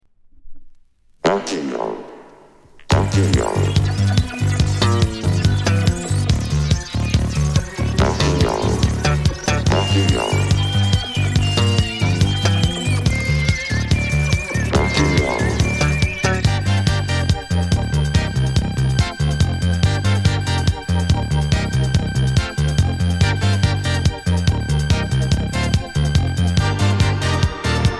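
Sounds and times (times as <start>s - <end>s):
techno music: 2.9s - 27.9s.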